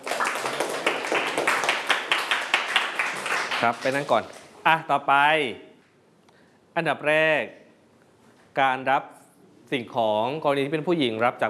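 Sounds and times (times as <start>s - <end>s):
classmates clapping hands: 0.0s - 4.5s
speech: 3.6s - 5.7s, 6.8s - 7.6s, 8.6s - 11.4s.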